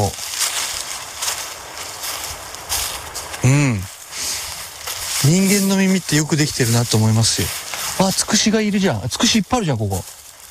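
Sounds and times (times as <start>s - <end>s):
footsteps crunching walking outdoors at night: 0.0s - 10.4s
short voiced sound: 3.4s - 3.9s
speech: 5.3s - 10.2s.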